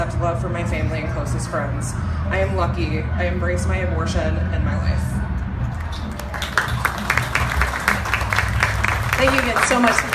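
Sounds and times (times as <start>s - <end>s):
speech: 0.2s - 5.3s, 9.2s - 10.1s
audience applauding: 5.7s - 10.1s.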